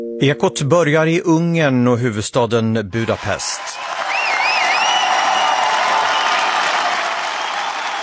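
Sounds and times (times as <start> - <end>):
speech: 0.2 - 3.9
large outdoor crowd cheering and applauding outside parliament: 3.0 - 8.0
crowd whistles: 3.7 - 8.0.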